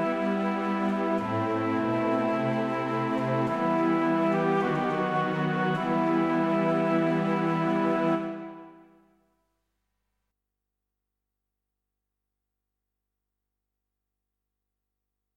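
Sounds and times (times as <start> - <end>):
orchestral woodwind melody riff in E minor: 0.0 - 8.9.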